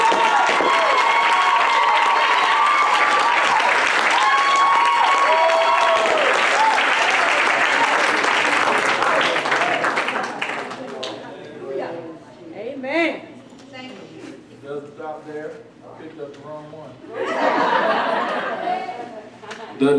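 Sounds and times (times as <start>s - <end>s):
audience applause: 0.0s - 11.2s
laughter: 17.1s - 19.9s.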